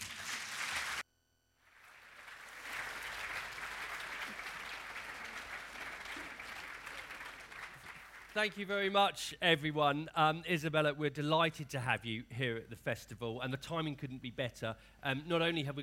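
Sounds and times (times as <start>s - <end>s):
audience applause: 0.0s - 1.0s, 1.6s - 8.5s
speech: 8.4s - 15.8s.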